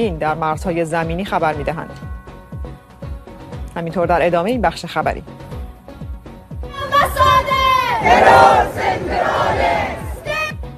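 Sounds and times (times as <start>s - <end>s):
speech: 0.0s - 2.2s, 3.8s - 5.4s, 8.0s - 9.8s
large crowd chanting at a protest rally: 6.8s - 10.5s.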